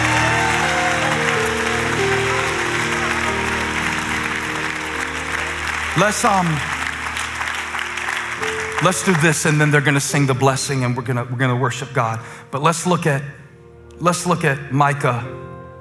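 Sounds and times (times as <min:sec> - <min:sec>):
audience clapping hands: 0:00.0 - 0:10.2
speech: 0:06.0 - 0:06.7, 0:08.8 - 0:13.4, 0:14.0 - 0:15.5.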